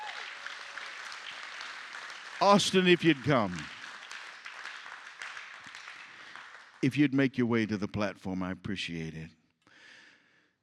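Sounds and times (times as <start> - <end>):
audience hand clapping: 0.0 - 7.7
speech: 2.4 - 3.7, 6.8 - 9.4.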